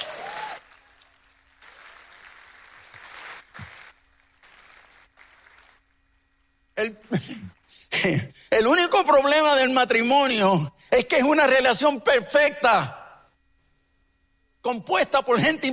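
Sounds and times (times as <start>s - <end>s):
audience applause: 0.0s - 5.8s
speech: 6.8s - 13.0s, 14.6s - 15.7s.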